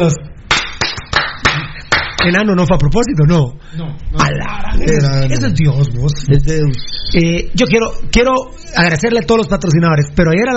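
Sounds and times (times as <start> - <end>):
speech: 0.0 - 0.3, 2.2 - 10.5
applause sound effect: 0.5 - 2.3.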